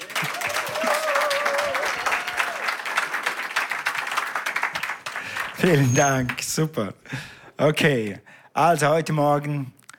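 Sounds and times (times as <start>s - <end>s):
audience applause: 0.0s - 6.4s
speech: 5.6s - 9.8s.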